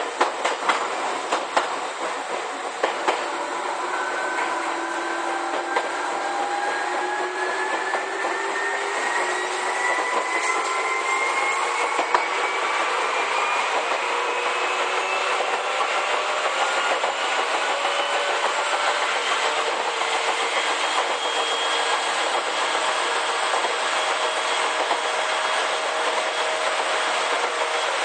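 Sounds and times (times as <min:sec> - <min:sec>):
Izukyu 8000 series train rushing roar: 0:00.0 - 0:28.0
rail clicks: 0:00.0 - 0:28.0
Izukyu 8000 series train motor whine rising: 0:03.3 - 0:19.2.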